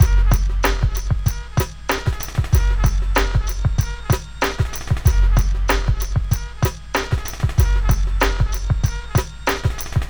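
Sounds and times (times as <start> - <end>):
hip hop beat: 0.0 - 10.0.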